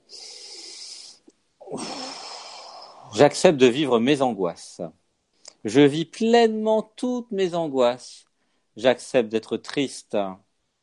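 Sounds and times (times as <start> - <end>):
deep breath, inhale through the nose and exhale: 0.0 - 3.2
speech: 3.2 - 5.0, 5.6 - 10.4.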